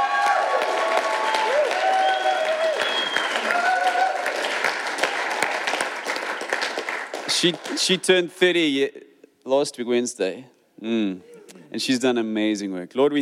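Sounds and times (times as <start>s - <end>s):
voices and whoops: 0.0s - 4.4s
crowd applause: 0.0s - 8.0s
speech: 7.4s - 13.2s.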